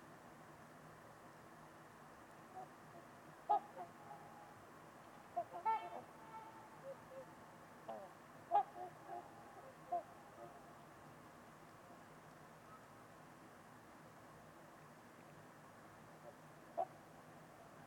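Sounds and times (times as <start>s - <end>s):
trumpeter swans honking: 2.5s - 4.6s, 5.2s - 10.9s, 16.2s - 17.1s.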